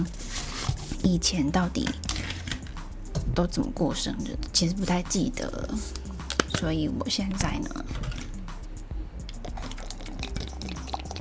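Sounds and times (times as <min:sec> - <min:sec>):
speech: 0:00.0 - 0:00.3, 0:01.0 - 0:02.4, 0:03.3 - 0:06.0, 0:06.6 - 0:08.2
liquid pouring into a cup while making milk tea: 0:09.4 - 0:11.1.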